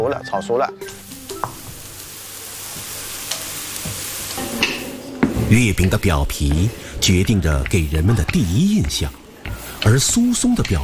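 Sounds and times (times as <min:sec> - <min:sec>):
speech: 0:00.1 - 0:01.0, 0:05.5 - 0:09.2, 0:09.8 - 0:10.8
nuts crackling while stir-frying in a wok: 0:01.0 - 0:10.8.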